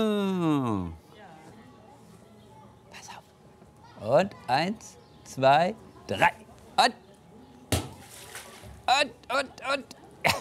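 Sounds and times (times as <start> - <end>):
speech: 4.1 - 7.0, 8.9 - 10.3
splash as someone jumps into water after a thrown ball: 7.7 - 8.7.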